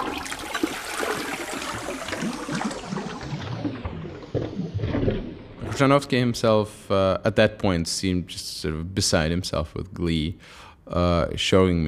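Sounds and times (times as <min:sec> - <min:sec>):
toilet flushing: 0:00.0 - 0:06.0
speech: 0:05.8 - 0:11.8.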